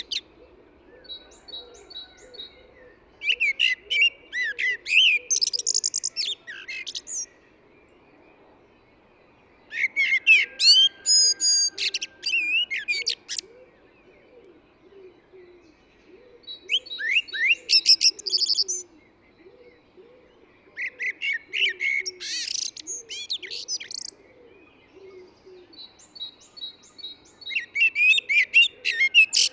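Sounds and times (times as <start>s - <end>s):
low cooing: 0.0s - 5.4s, 11.2s - 16.9s, 17.6s - 25.8s
Eurasian blackbird song: 0.0s - 29.5s.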